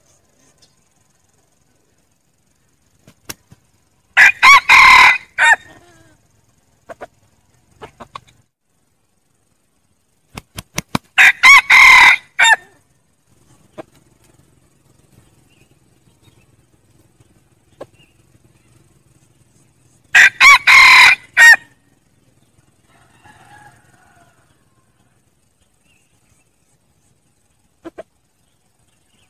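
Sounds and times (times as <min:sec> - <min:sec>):
red junglefowl crowing: 0:04.2 - 0:06.2, 0:11.2 - 0:12.9, 0:20.1 - 0:21.8, 0:22.7 - 0:25.2
soft clucking: 0:06.8 - 0:08.5, 0:27.8 - 0:28.2.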